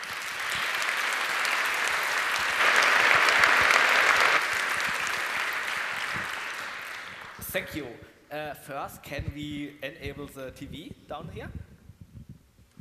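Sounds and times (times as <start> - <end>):
audience applause: 0.0 - 7.7
speech: 7.6 - 11.6.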